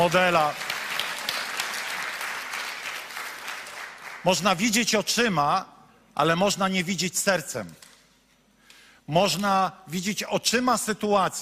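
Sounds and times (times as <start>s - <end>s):
speech: 0.0s - 0.7s, 4.2s - 7.8s, 9.1s - 11.4s
audience applause: 0.0s - 4.4s.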